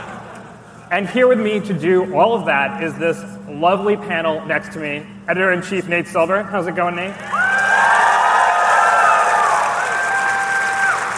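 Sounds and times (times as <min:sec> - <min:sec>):
speech: 0:00.9 - 0:07.4
crowd cheering with whoops and shouts: 0:07.2 - 0:11.1.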